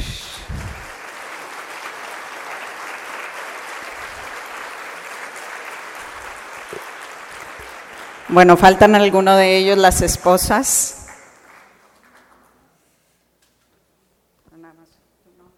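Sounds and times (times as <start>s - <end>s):
audience applause: 0.2s - 8.7s, 11.1s - 12.6s
speech: 8.3s - 11.0s.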